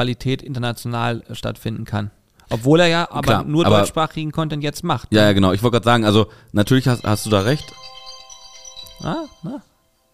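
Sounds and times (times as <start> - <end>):
speech: 0.0 - 7.9, 9.0 - 9.7
bright high repeating chimes: 6.6 - 10.1
alarm clock ringing: 6.7 - 10.1.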